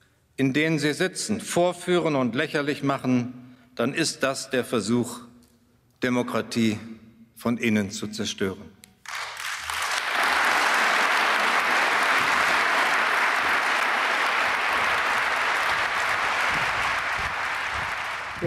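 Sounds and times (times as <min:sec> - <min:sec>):
speech: 0:00.4 - 0:05.3, 0:06.0 - 0:08.8
applause after a speech: 0:09.0 - 0:18.4.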